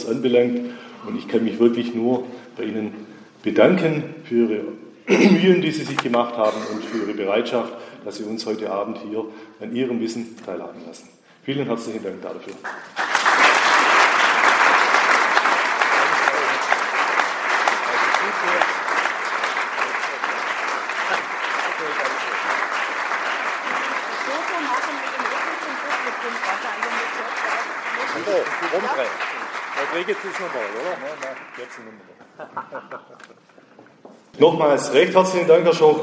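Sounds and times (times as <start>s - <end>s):
speech: 0.1s - 13.1s, 30.0s - 33.6s, 34.4s - 36.0s
audience applause: 12.6s - 32.0s
laughter: 32.2s - 33.6s.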